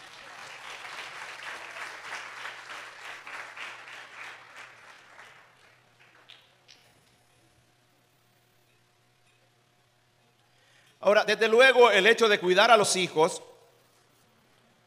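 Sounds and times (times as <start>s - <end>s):
audience applause: 0.0s - 6.5s
speech: 11.1s - 13.5s.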